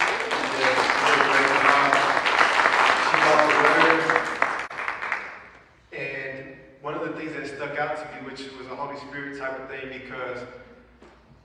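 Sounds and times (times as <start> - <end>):
room full of people applauding: 0.0 - 5.5
speech: 8.4 - 10.7.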